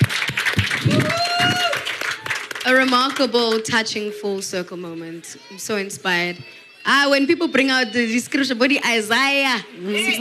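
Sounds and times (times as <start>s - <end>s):
audience applause: 0.0s - 3.7s
speech: 3.0s - 10.1s.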